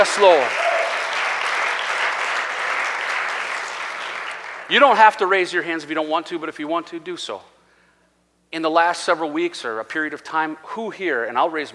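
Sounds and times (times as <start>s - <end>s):
speech: 0.0s - 0.7s, 4.7s - 7.5s, 8.5s - 11.7s
audience clapping: 0.0s - 4.9s.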